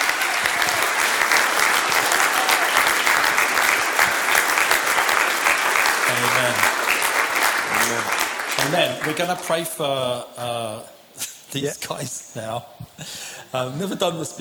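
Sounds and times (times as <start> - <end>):
audience applauding: 0.0 - 9.8
speech: 8.6 - 14.3.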